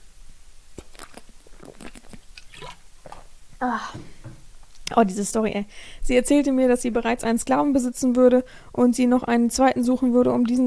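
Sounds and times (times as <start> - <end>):
person sipping water: 0.7 - 4.0
speech: 3.6 - 4.2, 4.9 - 10.6.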